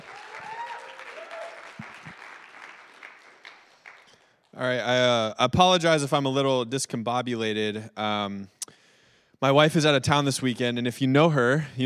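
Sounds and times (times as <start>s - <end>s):
audience applause welcoming a speaker: 0.0s - 4.3s
speech: 4.6s - 8.6s, 9.4s - 11.8s.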